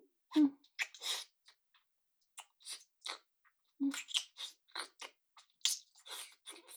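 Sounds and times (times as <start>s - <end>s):
deep kissing: 0.3s - 1.3s, 3.8s - 6.7s.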